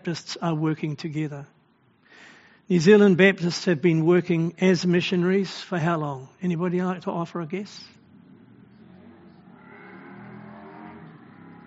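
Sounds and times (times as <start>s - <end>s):
speech: 0.0s - 1.6s, 2.2s - 8.0s
motorbike going past: 8.0s - 11.6s.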